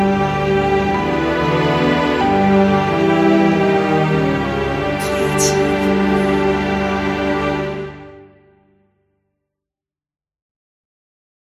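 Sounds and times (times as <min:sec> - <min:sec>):
orchestra playing: 0:00.0 - 0:08.4.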